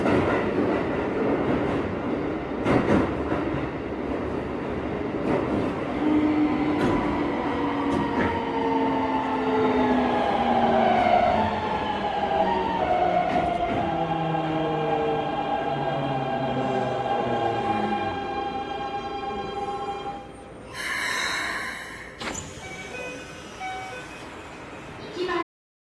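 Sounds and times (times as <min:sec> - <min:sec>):
Keikyu 1000 electric train with Siemens VVVF inverter: 0:00.0 - 0:25.4.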